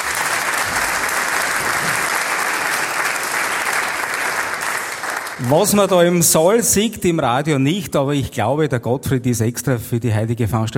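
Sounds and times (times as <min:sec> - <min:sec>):
audience applause: 0:00.0 - 0:06.6
speech: 0:05.4 - 0:10.7.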